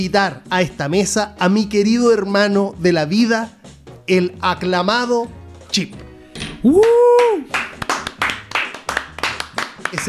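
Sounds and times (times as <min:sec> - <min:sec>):
speech: 0:00.0 - 0:06.0, 0:06.6 - 0:07.7
applause, hands clapping: 0:06.7 - 0:10.0.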